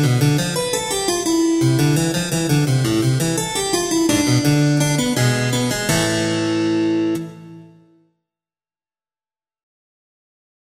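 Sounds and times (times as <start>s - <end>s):
harpsichord: 0.0s - 7.8s.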